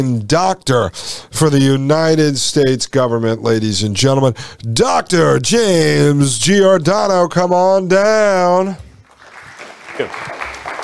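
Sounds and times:
speech: 0:00.0 - 0:08.9, 0:10.0 - 0:10.4
audience applause: 0:09.0 - 0:10.8.

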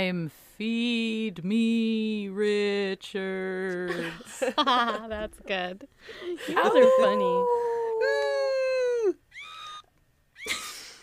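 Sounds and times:
speech: 0:00.0 - 0:08.2
tiny scream from a sound machine: 0:09.3 - 0:11.0.

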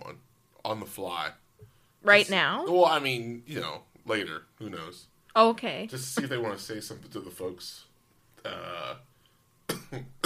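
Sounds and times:
speech: 0:00.7 - 0:01.4, 0:02.0 - 0:09.1, 0:09.9 - 0:10.2
person coughing: 0:09.7 - 0:10.2.

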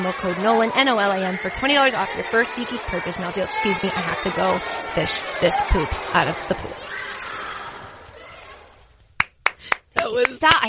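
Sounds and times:
speech: 0:00.0 - 0:07.0, 0:10.1 - 0:10.6
clapping: 0:09.2 - 0:10.6.

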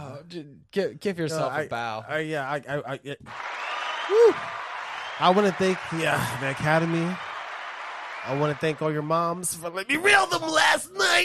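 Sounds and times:
speech: 0:00.3 - 0:04.6, 0:05.2 - 0:07.3, 0:08.2 - 0:11.2
applause: 0:03.3 - 0:09.6.

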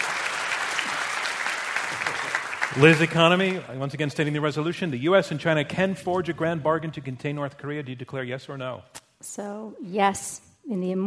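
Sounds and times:
audience applause: 0:00.0 - 0:04.7
speech: 0:02.2 - 0:11.0.

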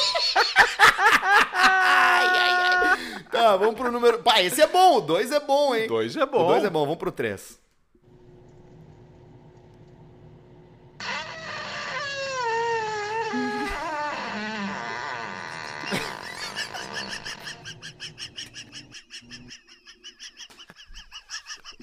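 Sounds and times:
laughter: 0:00.0 - 0:05.1, 0:13.3 - 0:21.8
speech: 0:03.5 - 0:07.6
fart: 0:11.0 - 0:17.6.

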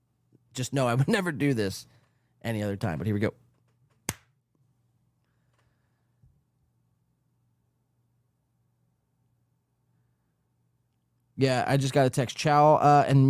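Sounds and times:
speech: 0:00.6 - 0:03.4, 0:11.4 - 0:13.2
hand clap for audio sync: 0:04.1 - 0:04.3.

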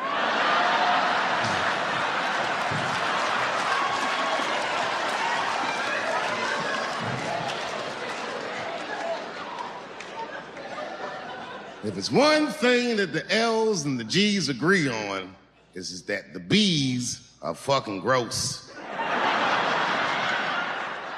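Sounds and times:
laughter: 0:00.0 - 0:05.3, 0:06.0 - 0:12.6, 0:18.4 - 0:21.1
audience screaming: 0:00.0 - 0:11.3
speech: 0:11.9 - 0:18.6.

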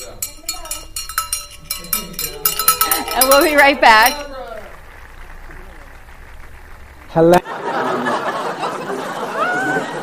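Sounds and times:
bell ringing: 0:00.0 - 0:04.9
speech: 0:03.2 - 0:04.3, 0:07.2 - 0:08.1
laughter: 0:07.1 - 0:10.0.

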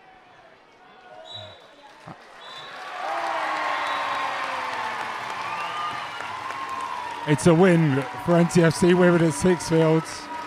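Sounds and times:
large football crowd cheering and applauding: 0:00.0 - 0:10.4
scattered whistles from crowd: 0:01.2 - 0:01.8, 0:02.4 - 0:02.9, 0:03.6 - 0:04.4, 0:05.4 - 0:06.4
speech: 0:02.1 - 0:02.3, 0:07.3 - 0:10.3.

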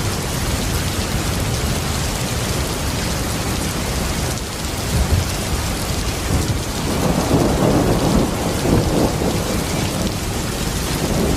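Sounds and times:
heavy rain: 0:00.0 - 0:11.3
thunder rumbling: 0:04.6 - 0:11.3.

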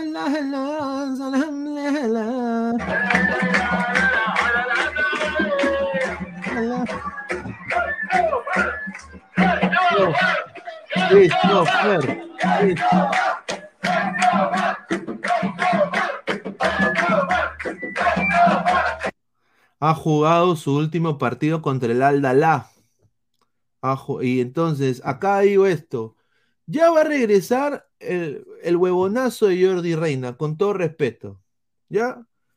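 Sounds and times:
speech: 0:00.2 - 0:03.9, 0:11.1 - 0:13.6, 0:19.8 - 0:22.7, 0:23.8 - 0:32.3
stadium crowd chanting and cheering a player: 0:02.8 - 0:19.1.

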